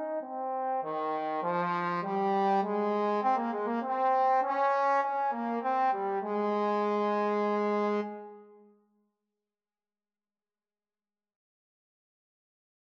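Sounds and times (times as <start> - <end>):
trombone duet: 0.0 - 8.3.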